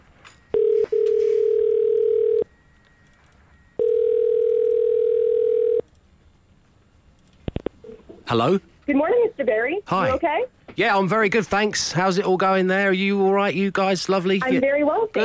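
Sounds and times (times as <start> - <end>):
telephone ringing tone: 0.5 - 3.0, 3.6 - 5.8
telephone dialing: 0.6 - 2.4, 3.8 - 5.8
speech: 8.3 - 15.2.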